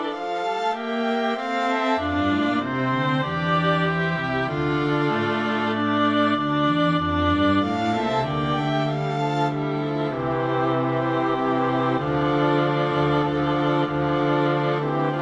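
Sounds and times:
string ensemble playing: 0.0s - 15.2s.

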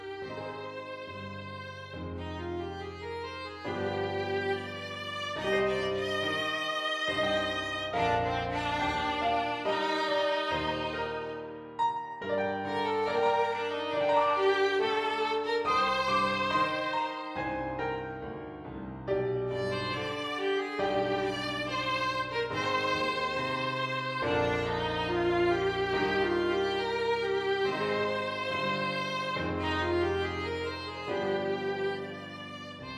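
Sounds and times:
violin: 0.0s - 32.9s.

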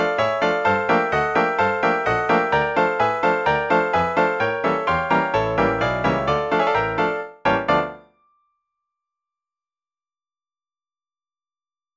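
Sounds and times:
traditional piece on one piano played by six hands: 0.0s - 8.1s.

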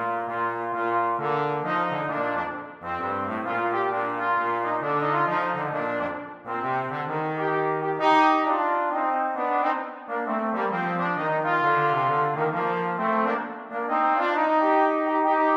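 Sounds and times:
jazz trombone duet: 0.0s - 15.5s.

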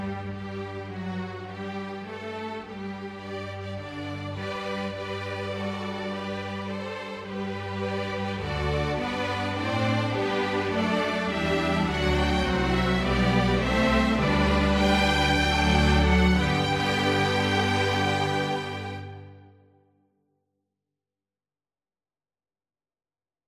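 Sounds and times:
traditional string orchestra or quintet playing: 0.0s - 19.5s.

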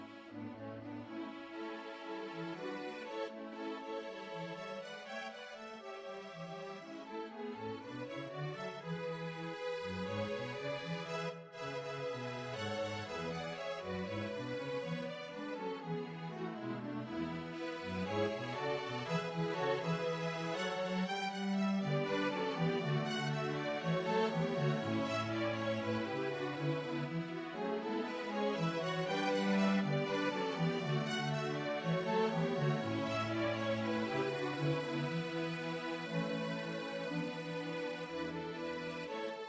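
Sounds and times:
string quartet playing: 0.0s - 39.4s.

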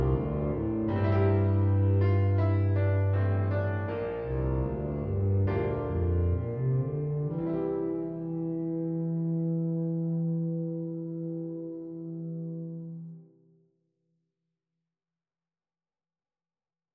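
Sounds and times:
tuba: 0.0s - 13.3s.

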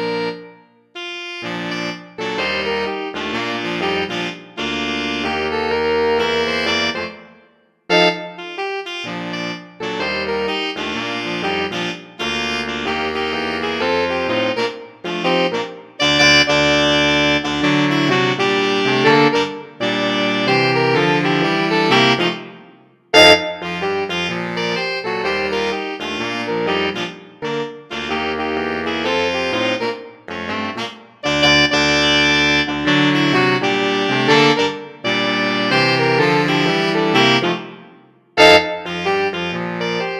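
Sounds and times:
saxophone quartet playing a carol: 0.0s - 7.3s, 7.9s - 40.1s.

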